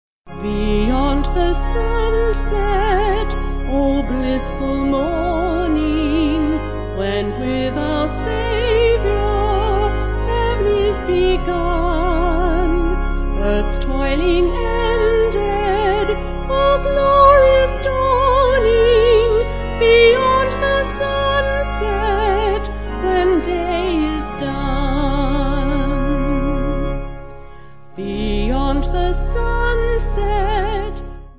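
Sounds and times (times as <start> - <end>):
vocal organ: 0.3 - 31.3.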